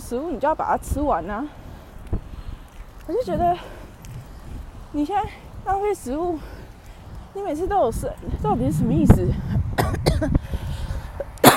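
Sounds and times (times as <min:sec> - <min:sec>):
speech: 0:00.1 - 0:01.6, 0:03.1 - 0:03.8, 0:04.9 - 0:06.6, 0:07.4 - 0:09.6, 0:10.2 - 0:10.6
person coughing: 0:09.8 - 0:10.4.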